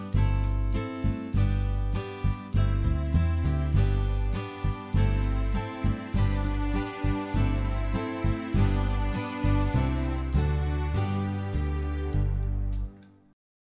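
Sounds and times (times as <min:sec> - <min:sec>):
backing track: 0:00.1 - 0:12.9.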